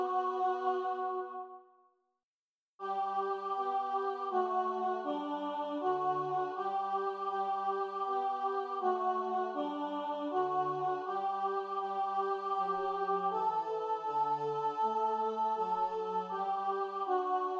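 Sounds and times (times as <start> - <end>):
alto voice singing over bass in a choir: 0.0 - 1.6, 2.8 - 17.5.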